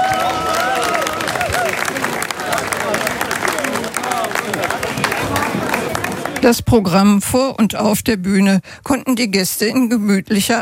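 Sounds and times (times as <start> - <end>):
audience applause: 0.0 - 6.6
speech: 6.4 - 10.6.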